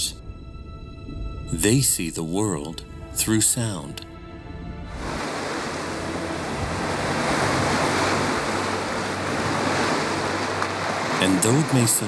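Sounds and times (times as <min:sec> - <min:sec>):
ocean ambience: 0:00.0 - 0:12.0
speech: 0:01.5 - 0:04.1, 0:11.4 - 0:12.0.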